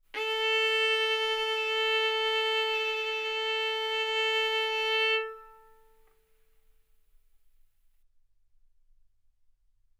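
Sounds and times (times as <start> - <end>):
violin arco on A string: 0.2 - 6.0.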